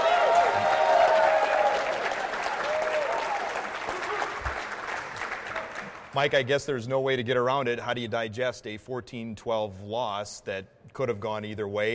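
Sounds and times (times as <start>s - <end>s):
audience applause: 0.0s - 6.2s
speech: 6.2s - 11.9s.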